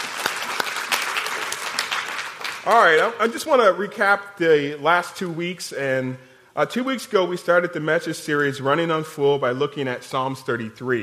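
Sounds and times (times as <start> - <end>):
audience round of applause: 0.0 - 3.2
speech: 2.6 - 11.0.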